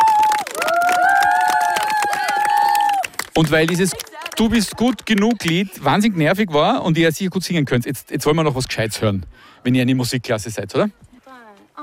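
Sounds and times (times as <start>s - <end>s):
high sustained whistles and cheering voices: 0.0s - 3.0s
audience clapping: 0.0s - 5.8s
speech: 3.4s - 11.0s.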